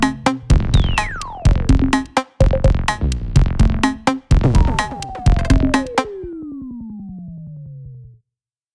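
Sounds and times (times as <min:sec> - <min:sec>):
VCO synthesized drums: 0:00.0 - 0:06.6.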